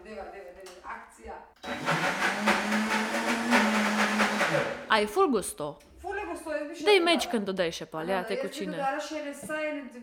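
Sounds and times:
blender puréeing hot soup: 1.6s - 5.0s
speech: 5.0s - 10.0s.

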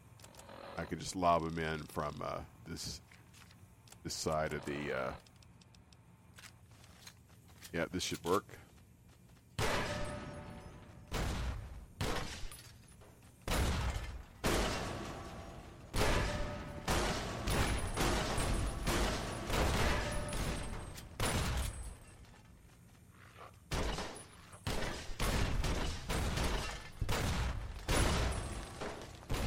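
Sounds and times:
speech: 0.8s - 3.1s, 4.0s - 5.3s, 7.7s - 8.6s
timed grenades exploding in a video game: 9.6s - 12.6s, 13.4s - 22.0s, 23.7s - 29.4s.

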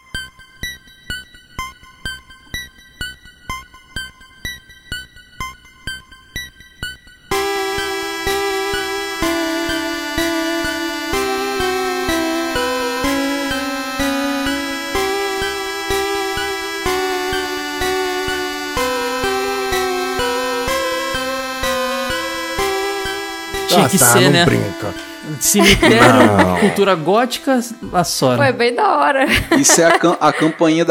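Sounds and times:
eerie video game town theme music: 7.3s - 28.6s
laughter: 23.7s - 27.4s, 28.0s - 30.8s
speech: 23.8s - 30.8s.

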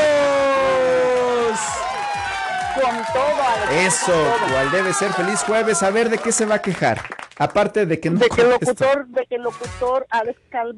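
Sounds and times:
cheering: 0.0s - 7.0s
applause: 0.8s - 7.9s
speech: 3.1s - 10.7s.

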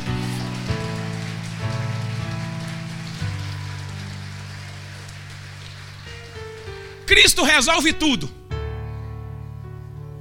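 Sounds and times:
audience applause: 0.0s - 7.9s
sustained keyboard chords: 0.0s - 10.1s
speech: 7.1s - 8.4s.

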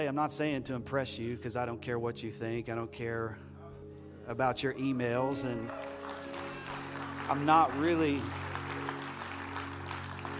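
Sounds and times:
speech: 0.0s - 3.5s, 4.3s - 6.4s, 7.3s - 8.4s
audience applause: 5.6s - 10.3s.

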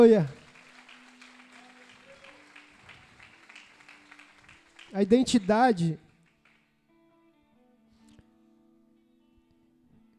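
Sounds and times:
speech: 0.0s - 0.4s, 4.9s - 6.0s
audience applause: 0.0s - 6.6s.

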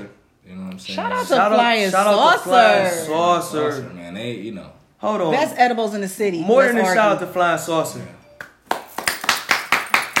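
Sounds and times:
speech: 0.8s - 8.2s
round of applause: 8.4s - 10.1s.

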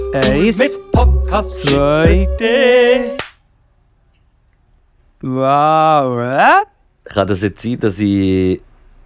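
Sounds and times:
speech: 0.2s - 3.2s, 5.2s - 8.7s
hand clap for sync test: 3.2s - 3.4s.

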